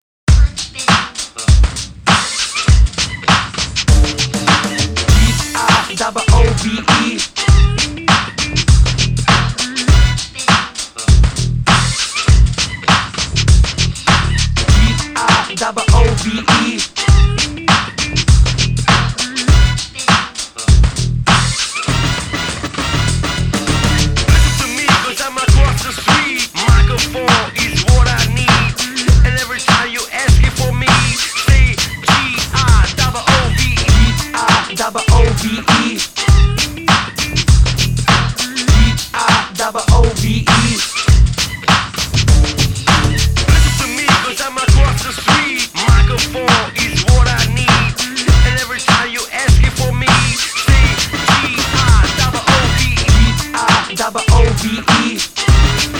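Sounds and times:
music groove with vocals: 0.3s - 55.9s.

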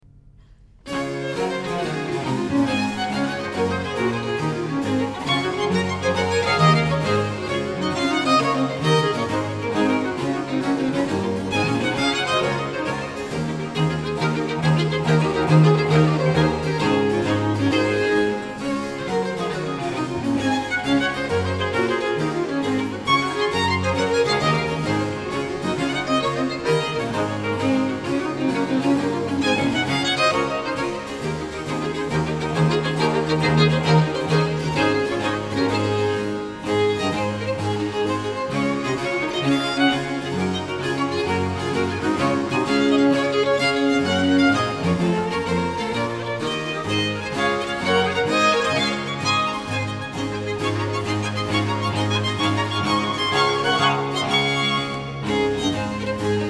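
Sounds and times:
gigue: 0.4s - 56.4s.

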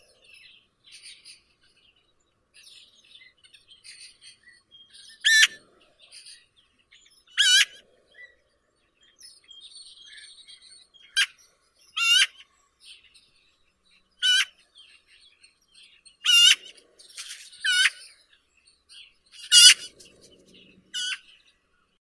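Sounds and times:
Eurasian magpie Pica pica calling: 5.2s - 5.6s, 7.4s - 7.8s, 12.0s - 12.4s, 14.2s - 14.5s, 16.2s - 18.1s, 19.4s - 21.2s.

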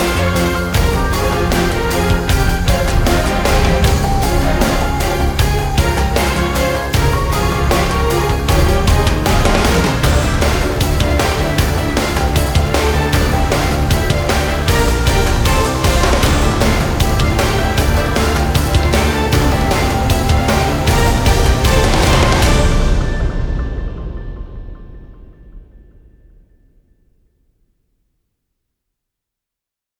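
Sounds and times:
remix music: 0.0s - 23.7s.

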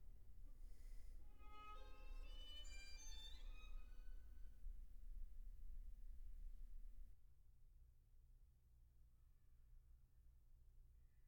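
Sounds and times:
string quartet playing very slowly: 0.0s - 7.0s.

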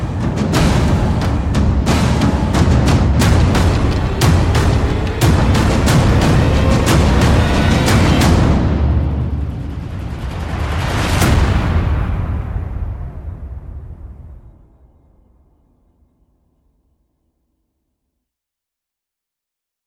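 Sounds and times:
percussion: 0.0s - 15.4s.

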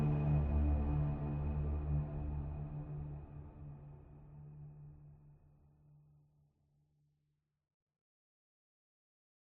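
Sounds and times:
ambient music: 0.0s - 4.5s.

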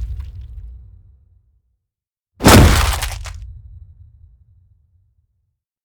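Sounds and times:
hit: 2.4s - 3.6s.

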